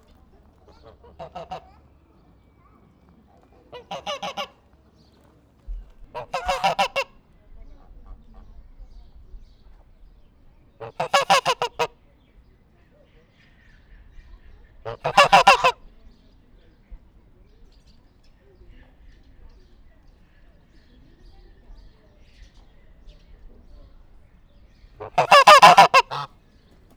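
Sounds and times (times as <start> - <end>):
domestic goose honking in a zoo farmyard: 0.6 - 1.9, 3.7 - 4.6, 6.1 - 7.1, 10.8 - 12.0, 14.8 - 15.8, 25.0 - 26.3.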